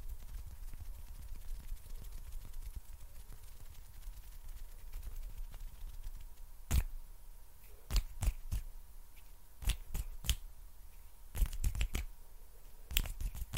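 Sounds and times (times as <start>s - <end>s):
sticky hand sounds: 0.0s - 6.9s, 7.9s - 8.7s, 9.6s - 10.4s, 11.3s - 12.1s, 12.9s - 13.5s
faint steady hum: 0.0s - 13.5s
finger snaps: 9.6s - 10.4s, 11.4s - 12.1s, 12.9s - 13.5s.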